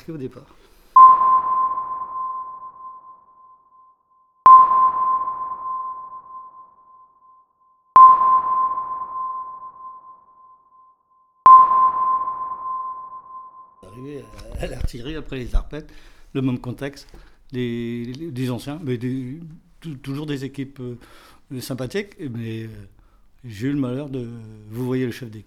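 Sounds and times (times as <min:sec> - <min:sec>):
speech: 0:00.0 - 0:00.8, 0:14.0 - 0:25.4
hull sonar pings: 0:01.0 - 0:13.8.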